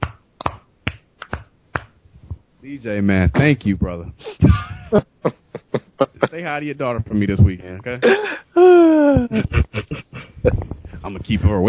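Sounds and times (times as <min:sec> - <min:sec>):
single person clapping hands: 0:00.0 - 0:02.0
speech: 0:02.6 - 0:05.4, 0:06.3 - 0:11.6
laughter: 0:04.4 - 0:06.6, 0:08.0 - 0:10.6.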